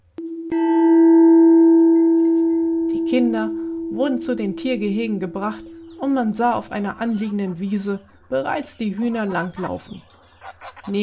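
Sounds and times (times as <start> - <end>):
gate bell ringing: 0.2 - 6.7
speech: 3.1 - 10.2, 10.8 - 11.0.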